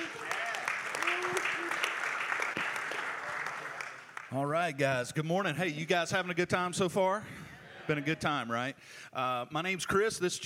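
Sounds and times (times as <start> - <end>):
church gathering audience clapping to welcome speakers: 0.0 - 4.6
speech: 4.3 - 10.4.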